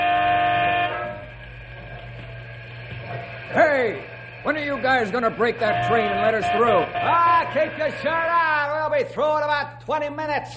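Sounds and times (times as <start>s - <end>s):
truck air horn honking: 0.0s - 1.4s, 5.6s - 8.1s
speech: 3.5s - 10.5s.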